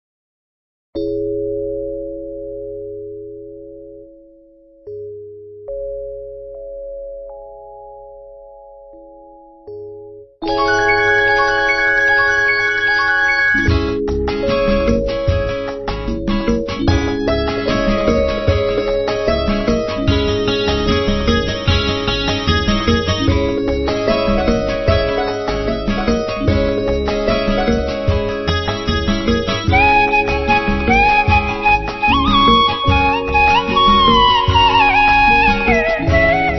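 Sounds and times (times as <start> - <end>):
Tamil karaoke music: 10.4 - 36.5.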